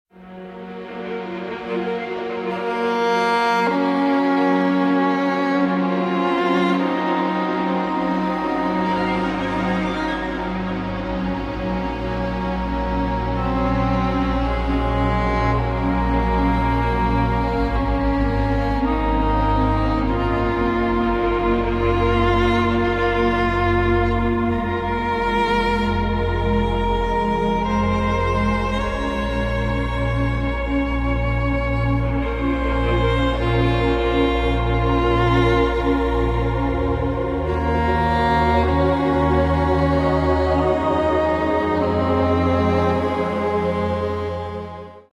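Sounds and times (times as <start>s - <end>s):
violin: 0.1s - 45.1s.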